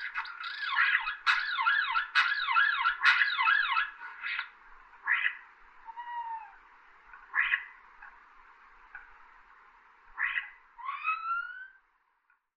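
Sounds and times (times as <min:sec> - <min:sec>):
starlings: 0:00.0 - 0:07.9, 0:10.2 - 0:11.9.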